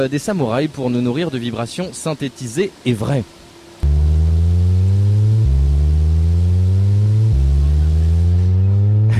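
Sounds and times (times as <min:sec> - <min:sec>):
speech: 0:00.0 - 0:03.4
street cleaning vehicle cleaning the roadway: 0:03.8 - 0:09.1.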